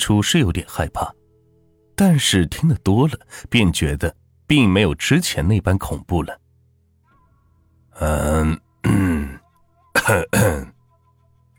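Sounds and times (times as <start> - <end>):
speech: 0.0 - 1.2, 2.0 - 6.4, 8.0 - 9.1, 10.0 - 10.8
throat clearing: 8.0 - 9.4, 10.0 - 10.8.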